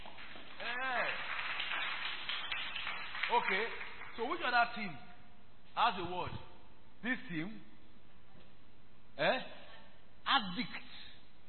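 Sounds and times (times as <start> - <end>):
crowd clapping: 0.0 - 4.8
speech: 3.3 - 5.1, 5.8 - 7.7, 9.2 - 9.6, 10.3 - 10.8.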